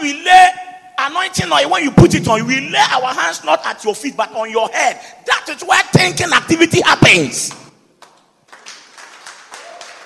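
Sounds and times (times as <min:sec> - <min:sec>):
speech: 0:01.0 - 0:07.6
Christians clapping: 0:07.5 - 0:10.0.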